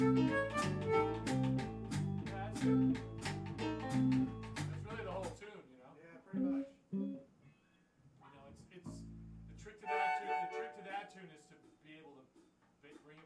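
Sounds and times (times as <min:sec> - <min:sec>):
blues music: 0:00.0 - 0:05.4, 0:06.3 - 0:07.3, 0:08.8 - 0:11.5.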